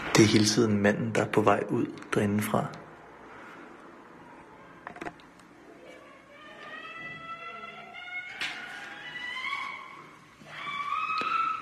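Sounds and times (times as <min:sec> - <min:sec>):
speech: 0:00.2 - 0:02.8
woman screaming loudly in another room: 0:06.3 - 0:11.5.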